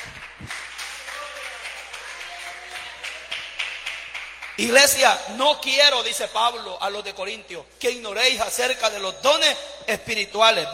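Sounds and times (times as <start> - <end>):
audience applause: 0.0 - 4.6
speech: 4.6 - 10.7.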